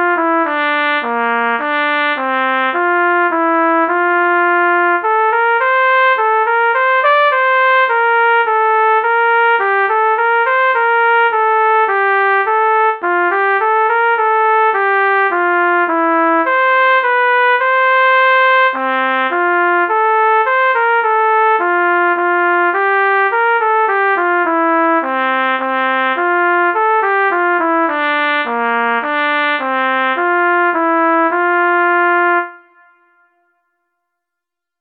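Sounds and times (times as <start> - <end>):
trumpet melody: 0.0 - 33.9.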